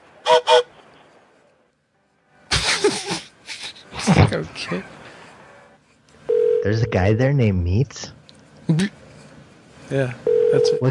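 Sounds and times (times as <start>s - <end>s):
voice imitating a train whistle: 0.2s - 0.7s
speech: 4.1s - 5.0s, 6.6s - 9.0s, 9.9s - 10.8s.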